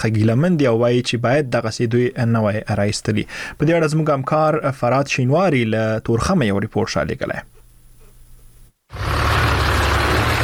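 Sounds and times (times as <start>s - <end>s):
speech: 0.0s - 7.6s
trucks carrying Afghan refugees arriving at the Torkham border gate: 8.9s - 10.4s.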